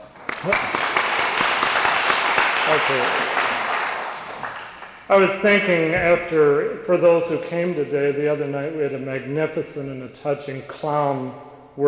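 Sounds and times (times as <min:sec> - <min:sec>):
audience applause: 0:00.0 - 0:05.1
speech: 0:00.4 - 0:00.9, 0:02.7 - 0:03.2, 0:05.1 - 0:11.8.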